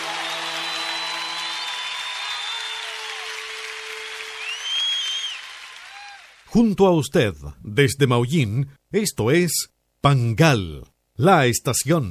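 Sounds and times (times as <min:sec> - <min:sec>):
loud applause: 0:00.0 - 0:06.5
speech: 0:06.5 - 0:12.0.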